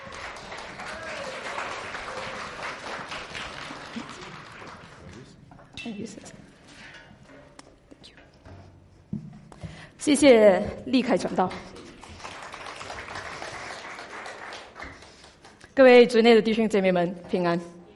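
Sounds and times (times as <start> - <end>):
audience applause: 0.0 - 5.4, 11.6 - 15.6
speech: 5.8 - 6.4, 10.0 - 11.7, 15.8 - 17.8.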